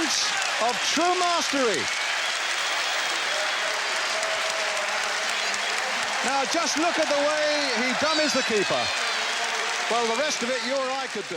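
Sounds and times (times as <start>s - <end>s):
crowd applause: 0.0s - 11.3s
speech: 0.6s - 2.0s, 6.2s - 9.0s, 9.9s - 11.3s.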